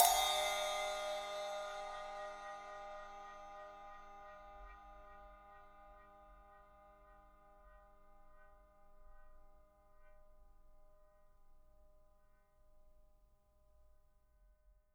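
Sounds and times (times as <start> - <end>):
cymbal effects: 0.0 - 5.1.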